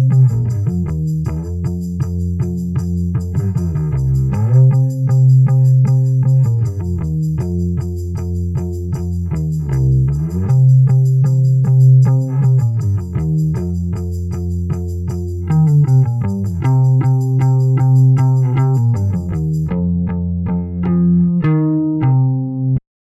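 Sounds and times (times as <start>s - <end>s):
bassline in eighth notes at 78 bpm: 0.0s - 22.8s.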